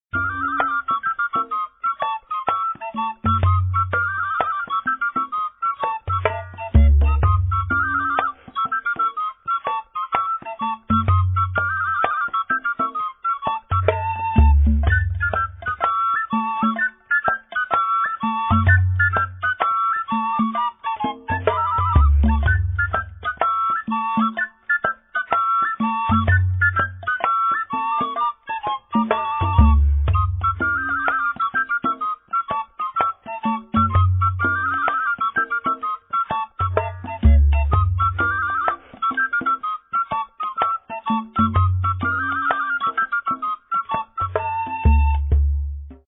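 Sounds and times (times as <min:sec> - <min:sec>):
sopilka flute: 0:00.0 - 0:46.0.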